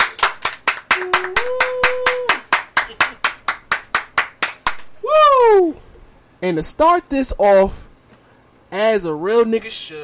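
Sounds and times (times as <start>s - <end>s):
group clapping in rhythm: 0.0s - 5.0s
speech: 6.4s - 7.8s, 8.8s - 10.0s.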